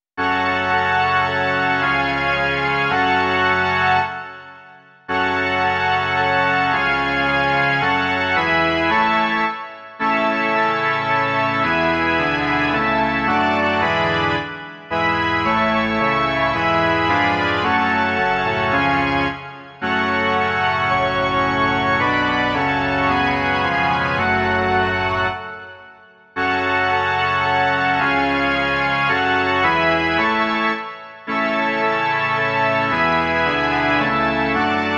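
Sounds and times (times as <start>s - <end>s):
organ: 0.2s - 34.9s.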